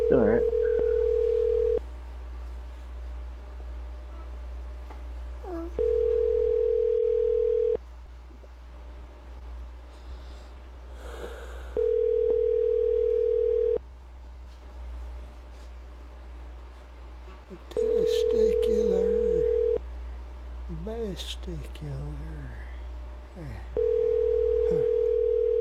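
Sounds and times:
telephone ringback tone while placing a call: 0.0 - 1.8, 5.8 - 7.8, 11.8 - 13.8, 17.8 - 19.8, 23.8 - 25.6
faint hum: 0.0 - 25.6.

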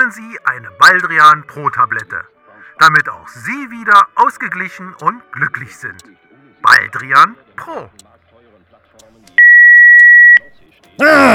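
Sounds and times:
speech: 0.1 - 8.1, 11.0 - 11.3
telephone electronic beep: 9.4 - 10.5.

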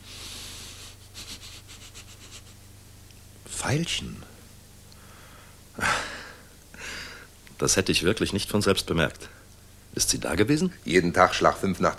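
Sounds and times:
person sniffing through flared nostrils, smelling for a scent of violets: 0.0 - 2.5
low steady hum: 0.0 - 11.9
speech: 3.6 - 4.3, 7.6 - 9.4, 10.0 - 11.9.

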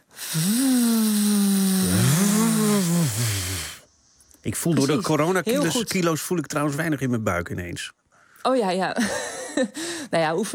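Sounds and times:
speech: 0.3 - 0.7, 4.4 - 10.5
lip-trill voice imitating a leaf blower: 1.0 - 3.6.

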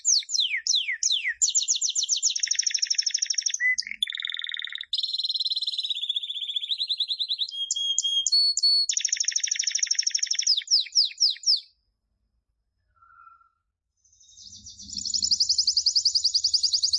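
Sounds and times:
canary singing persistently: 0.0 - 11.8, 13.0 - 16.9.

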